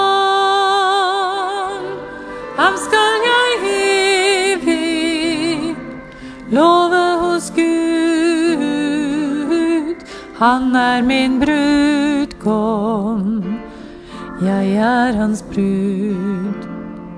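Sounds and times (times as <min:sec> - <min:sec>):
alto voice singing: 0:00.0 - 0:16.9.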